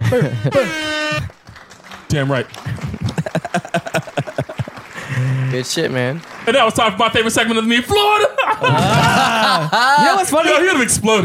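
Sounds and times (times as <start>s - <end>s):
laughter: 0.0s - 5.6s, 8.0s - 10.7s
speech: 0.1s - 1.3s, 2.1s - 3.9s, 5.2s - 11.2s
air horn sound effect: 0.1s - 1.4s.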